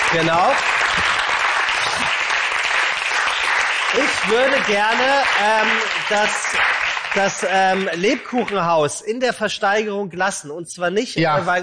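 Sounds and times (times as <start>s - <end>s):
audience applause: 0.0s - 8.6s
speech: 0.1s - 1.2s, 2.0s - 2.2s, 3.9s - 11.6s.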